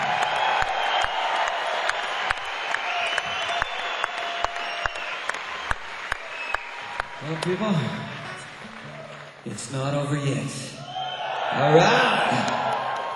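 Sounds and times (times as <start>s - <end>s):
cheers: 0.0s - 9.5s, 10.4s - 13.1s
concert crowd clapping: 0.0s - 13.1s
high whistles: 0.2s - 6.9s
speech: 7.3s - 8.1s, 9.5s - 10.8s, 11.6s - 12.6s.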